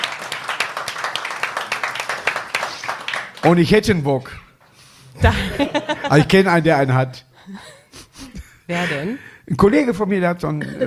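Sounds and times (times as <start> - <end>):
clapping: 0.0 - 3.6
speech: 3.4 - 4.4, 5.2 - 7.7, 8.7 - 10.8
laughter: 5.2 - 6.5.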